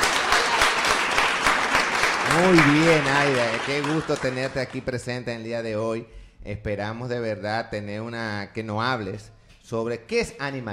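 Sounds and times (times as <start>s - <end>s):
audience applause: 0.0s - 4.9s
speech: 2.4s - 10.7s.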